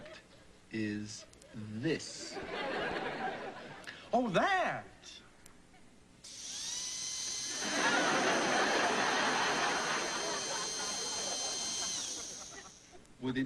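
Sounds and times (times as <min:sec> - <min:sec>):
speech: 0:00.7 - 0:02.6, 0:04.1 - 0:05.2, 0:13.2 - 0:13.4
laughter: 0:01.5 - 0:03.9, 0:07.6 - 0:13.0
dental drill whirring: 0:06.2 - 0:13.0.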